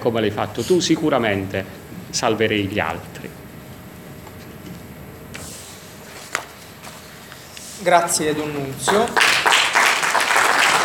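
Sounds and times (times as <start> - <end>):
speech: 0.0 - 3.3, 7.8 - 9.4
audience applause: 8.8 - 10.8.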